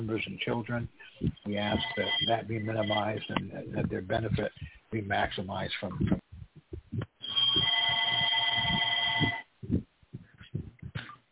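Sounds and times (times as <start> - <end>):
speech: 0.0 - 6.3
telephone ringing: 1.6 - 3.4, 7.2 - 9.5.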